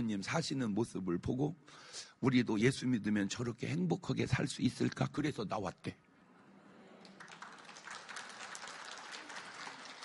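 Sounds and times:
speech: 0.0s - 6.0s
audience clapping: 7.0s - 10.0s.

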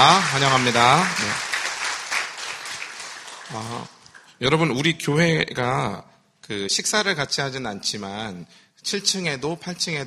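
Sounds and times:
speech: 0.0s - 1.5s, 3.5s - 10.0s
audience applauding to welcome newcomers: 0.0s - 4.4s.

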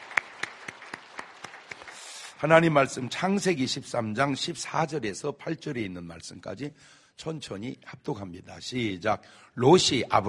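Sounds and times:
congregation clapping during a church service: 0.0s - 3.7s
speech: 2.4s - 10.2s.

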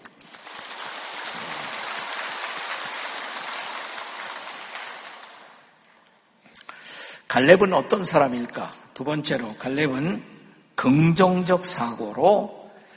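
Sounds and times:
audience applause: 0.0s - 5.8s
speech: 7.4s - 12.6s.

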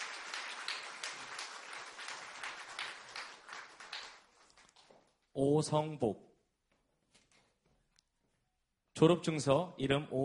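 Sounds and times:
audience applause: 0.0s - 4.9s
speech: 5.4s - 6.3s, 9.0s - 10.2s.

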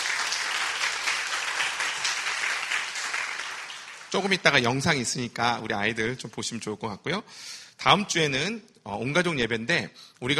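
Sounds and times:
audience applause: 0.0s - 4.6s
speech: 4.1s - 10.3s.

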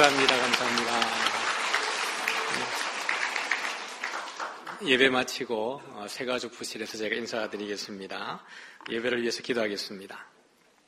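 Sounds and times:
audience applauding to welcome new members: 0.0s - 5.2s
speech: 4.8s - 10.3s.

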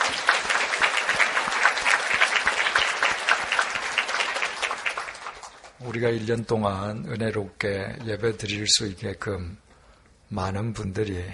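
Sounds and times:
audience applause: 0.0s - 6.1s
speech: 5.9s - 9.7s, 10.3s - 11.3s.

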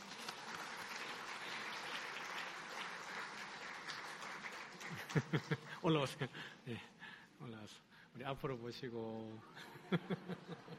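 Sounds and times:
audience applause: 0.0s - 5.7s
laughter: 4.8s - 6.5s, 9.6s - 10.7s
speech: 5.2s - 10.7s.

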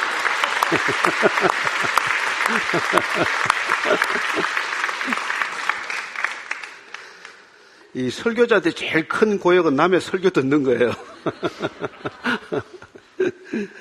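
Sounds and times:
laughter: 0.0s - 5.9s, 10.8s - 13.8s
audience applauding: 0.0s - 7.6s
speech: 0.7s - 5.3s, 7.9s - 13.8s.

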